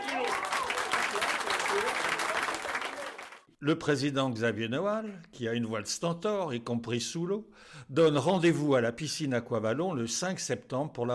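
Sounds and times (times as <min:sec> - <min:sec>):
audience applause: 0:00.0 - 0:03.5
speech: 0:03.6 - 0:11.1.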